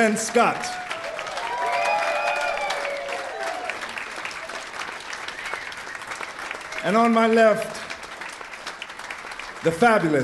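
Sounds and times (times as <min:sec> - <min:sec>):
speech: 0:00.0 - 0:00.8, 0:06.8 - 0:07.8, 0:09.6 - 0:10.2
audience applause: 0:00.0 - 0:10.2
cheering and whooping voices: 0:00.5 - 0:04.7.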